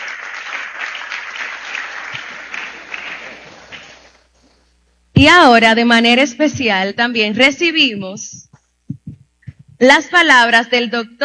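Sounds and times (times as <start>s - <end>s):
audience applause: 0.0s - 4.2s
speech: 5.2s - 8.4s, 9.8s - 11.2s.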